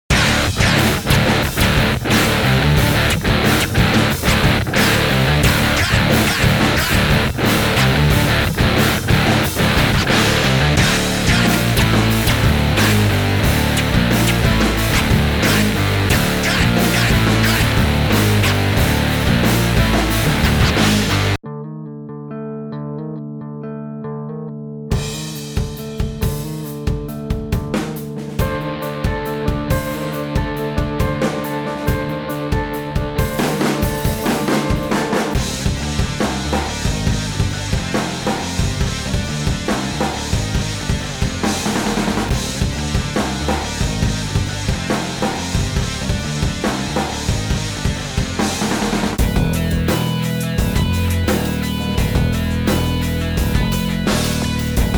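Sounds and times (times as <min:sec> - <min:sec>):
arena rock music: 0:00.1 - 0:54.9.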